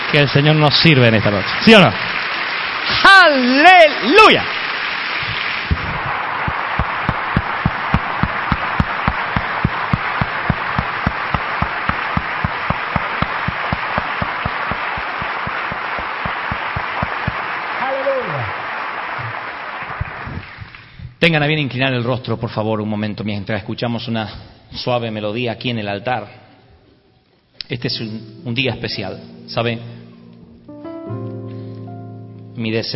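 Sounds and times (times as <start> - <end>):
audience clapping in steady rhythmic unison: 0.0 - 21.0
speech: 0.1 - 2.3, 3.2 - 4.6, 21.2 - 26.4, 27.7 - 30.0, 32.6 - 32.9.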